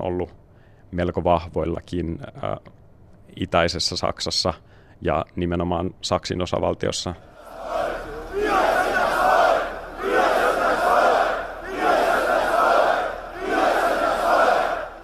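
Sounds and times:
speech: 0.0s - 7.3s
large crowd chanting a protest slogan: 7.4s - 15.0s.

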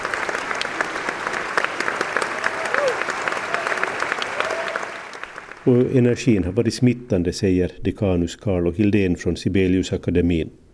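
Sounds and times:
concert audience applauding a conductor after a student orchestra performance: 0.0s - 6.7s
speech: 5.6s - 10.6s.

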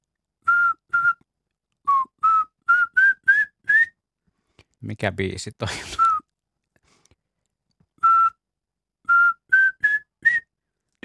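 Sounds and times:
human voice whistling imitation of pygmy owl autumn territorial call: 0.5s - 1.2s, 1.9s - 4.0s, 8.0s - 8.4s, 9.1s - 10.5s
speech: 4.8s - 6.1s.

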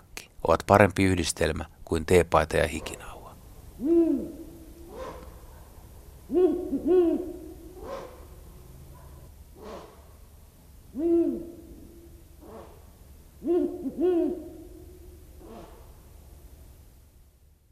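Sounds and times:
speech: 0.5s - 3.1s, 13.4s - 14.5s
Ural owl giving warning barks: 2.7s - 10.1s, 10.9s - 16.1s.

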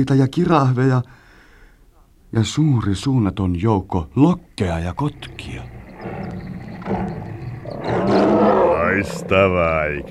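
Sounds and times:
speech: 0.0s - 1.2s, 2.3s - 5.8s, 6.8s - 7.2s, 9.0s - 10.0s
big cat roaring: 5.0s - 10.0s.

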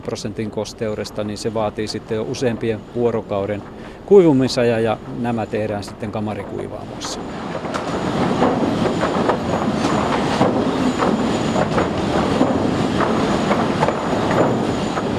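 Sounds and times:
speech: 0.0s - 8.0s
faint high whine: 0.0s - 15.1s
sawmill production line machinery roar: 0.0s - 15.1s
clanks and thuds: 5.9s - 15.1s.

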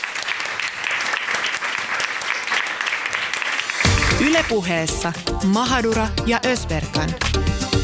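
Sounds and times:
audience applause: 0.0s - 4.7s
speech: 4.2s - 7.7s.

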